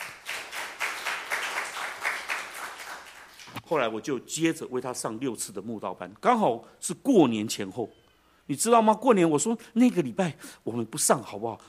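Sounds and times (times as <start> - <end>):
audience clapping: 0.0 - 3.6
speech: 3.7 - 11.6.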